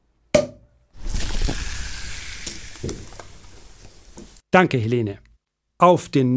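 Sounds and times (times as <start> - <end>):
champagne poured with bubbly fizzing: 1.0 - 4.4
speech: 2.8 - 3.0, 4.5 - 5.2, 5.8 - 6.3.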